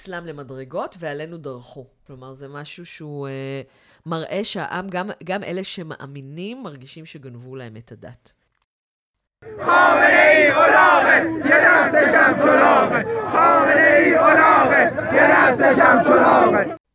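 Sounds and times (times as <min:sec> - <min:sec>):
speech: 0:00.0 - 0:08.4, 0:09.4 - 0:16.8
large protest crowd chanting a slogan: 0:09.4 - 0:16.8.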